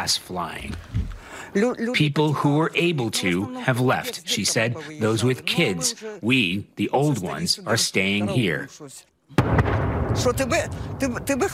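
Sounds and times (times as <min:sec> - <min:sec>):
speech: 0:00.0 - 0:11.5
distant explosions from shelling: 0:09.4 - 0:11.5.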